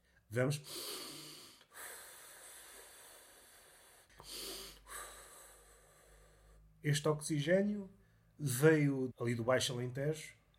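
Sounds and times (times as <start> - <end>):
speech: 0.3 - 1.1, 6.8 - 10.4
deep breathing in through the nose beside a fruit-laden tree: 0.6 - 6.8.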